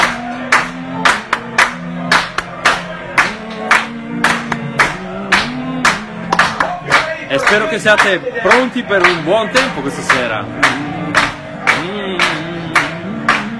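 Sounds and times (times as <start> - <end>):
audience clapping hands: 0.0 - 13.5
speech: 7.5 - 10.9.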